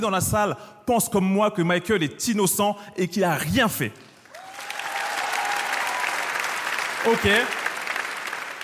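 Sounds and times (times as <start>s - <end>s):
speech: 0.0s - 4.1s, 7.0s - 7.6s
audience applause: 4.2s - 8.6s.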